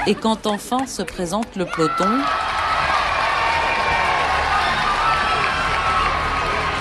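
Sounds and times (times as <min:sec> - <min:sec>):
speech: 0:00.0 - 0:02.6
roadside crowd cheering and applauding a women's cycle race: 0:01.4 - 0:06.7.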